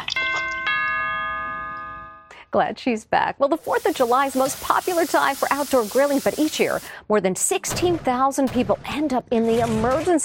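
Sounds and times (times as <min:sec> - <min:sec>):
doorbell chime: 0:00.2 - 0:02.4
speech: 0:02.5 - 0:10.2.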